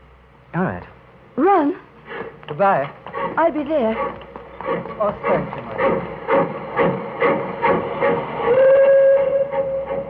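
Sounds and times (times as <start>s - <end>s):
speech: 0.5s - 1.9s, 2.6s - 7.0s
steam train pulling away with rhythmic chuffing: 3.0s - 10.0s
sustained steam train whistle tone: 5.8s - 10.0s.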